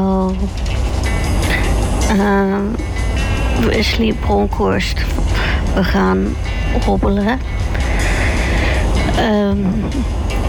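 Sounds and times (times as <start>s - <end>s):
speech: 0.0s - 0.9s, 2.1s - 2.9s, 3.6s - 5.2s, 5.8s - 7.6s, 9.2s - 10.4s
rumble and rattle inside a moving train: 0.0s - 10.4s.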